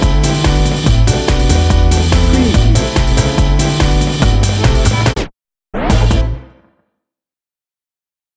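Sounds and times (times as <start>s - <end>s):
gritty upbeat instrumental city life music: 0.0s - 5.2s.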